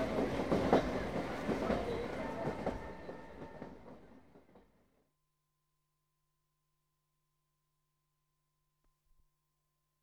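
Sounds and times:
Deccan train in India: 0.0s - 5.1s.

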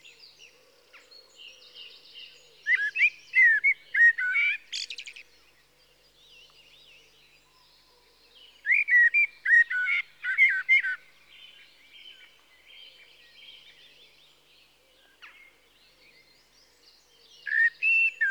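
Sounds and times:
common blackbird fluty whistled song: 2.6s - 5.2s, 8.6s - 11.0s, 17.4s - 18.2s.

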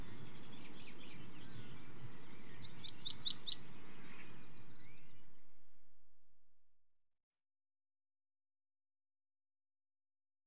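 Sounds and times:
common chaffinch singing: 0.0s - 5.3s.

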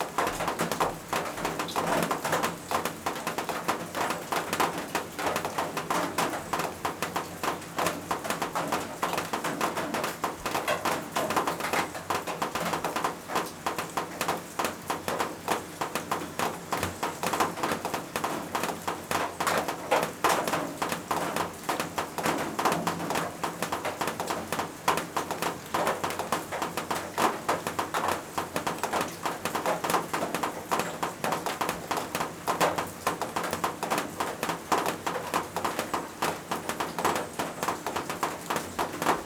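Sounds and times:
raindrops on a roof: 0.0s - 39.2s.

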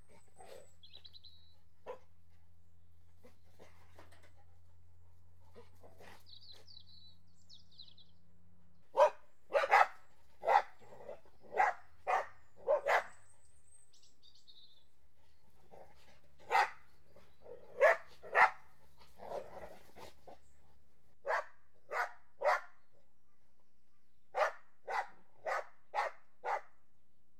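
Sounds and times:
Border Collies and Labradors barking while playing: 1.8s - 2.1s, 8.9s - 13.2s, 16.4s - 16.8s, 17.4s - 20.1s, 21.3s - 22.7s, 24.4s - 26.7s.

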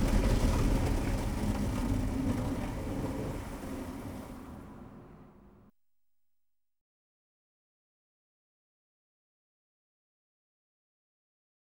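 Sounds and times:
car wash heard from inside a Renault 5: 0.0s - 5.7s.

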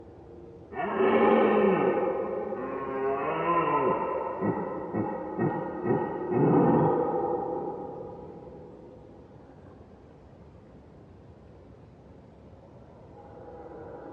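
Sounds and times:
red deer roaring: 0.7s - 8.4s.

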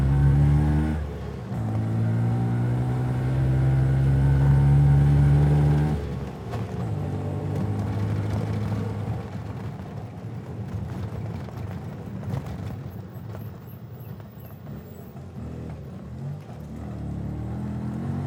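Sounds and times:
four-stroke auto rickshaw driving at various speeds: 0.0s - 18.2s
four-stroke auto rickshaw slowing: 4.5s - 18.2s.

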